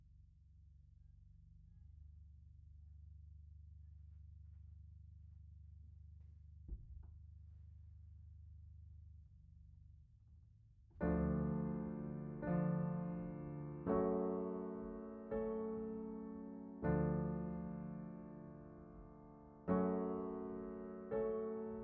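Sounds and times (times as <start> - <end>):
piano: 11.0 - 21.8.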